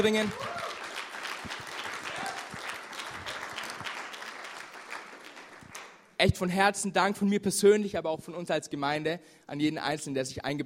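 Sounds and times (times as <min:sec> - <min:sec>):
speech: 0:00.0 - 0:00.4, 0:06.2 - 0:10.6
audience applauding: 0:00.0 - 0:06.0.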